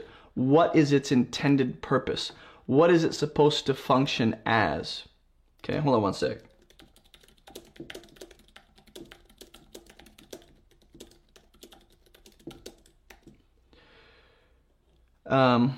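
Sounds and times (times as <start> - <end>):
speech: 0.4 - 6.5, 7.8 - 8.0, 15.3 - 15.7
typing on a computer keyboard: 6.4 - 13.4.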